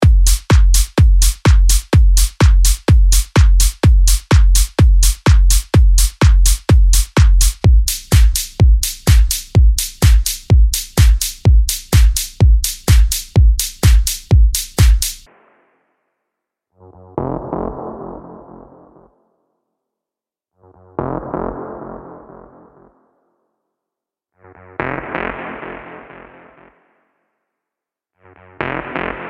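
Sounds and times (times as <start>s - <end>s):
techno music: 0.0s - 15.3s, 28.7s - 29.2s.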